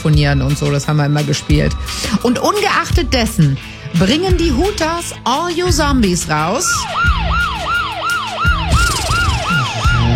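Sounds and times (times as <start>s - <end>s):
speech: 0.0s - 7.5s
police siren sound effect: 6.4s - 10.1s.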